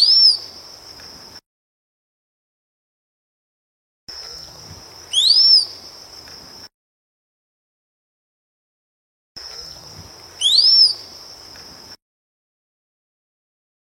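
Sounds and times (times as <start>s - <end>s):
rose-collared piha whistling: 0.0s - 0.5s, 5.1s - 5.8s, 10.4s - 11.0s
high insect hum: 0.0s - 1.4s, 4.1s - 6.7s, 9.4s - 12.0s.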